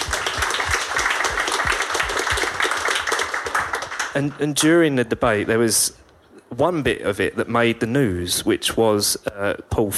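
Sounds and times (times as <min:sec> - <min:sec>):
crowd applause: 0:00.0 - 0:04.4
speech: 0:04.2 - 0:09.9.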